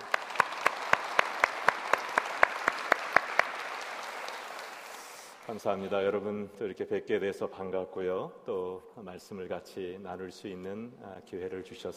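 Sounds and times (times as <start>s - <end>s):
audience clapping in a steady rhythm: 0.0s - 5.8s
speech: 5.5s - 11.9s.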